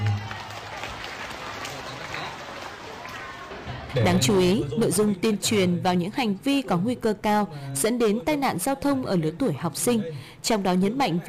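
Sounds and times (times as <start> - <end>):
children's applause: 0.0 - 3.9
speech: 3.9 - 11.2.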